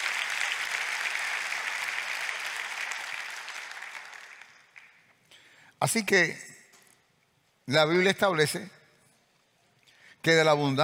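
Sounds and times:
audience applauding: 0.0s - 5.1s
speech: 5.8s - 6.5s, 7.7s - 8.8s, 10.2s - 10.8s.

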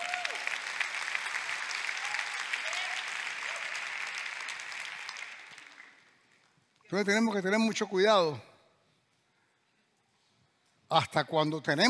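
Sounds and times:
audience applause: 0.0s - 6.3s
speech: 6.9s - 8.5s, 10.9s - 11.8s.

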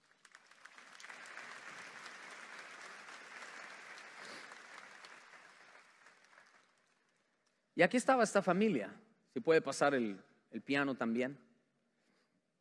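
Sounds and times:
applause: 0.0s - 7.7s
speech: 7.8s - 11.4s.

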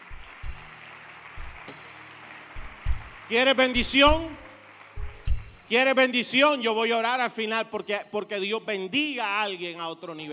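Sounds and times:
audience applause: 0.0s - 6.0s
deep low thumps: 1.4s - 1.7s, 2.6s - 3.2s, 3.8s - 5.6s
speech: 3.3s - 4.4s, 5.7s - 10.3s.

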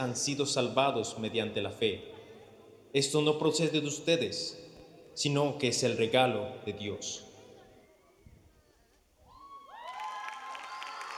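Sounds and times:
speech: 0.0s - 2.2s, 2.9s - 4.6s, 5.2s - 7.3s
audience cheering and applause: 9.4s - 11.1s.

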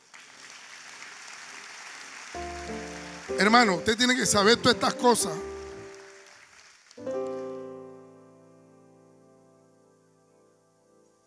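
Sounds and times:
audience applause: 0.0s - 7.7s
speech: 3.4s - 5.5s.

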